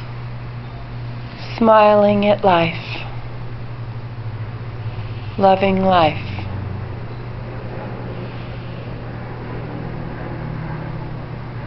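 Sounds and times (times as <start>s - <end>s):
speech: 1.6s - 2.9s, 5.4s - 6.4s
airplane in flight: 4.0s - 11.6s.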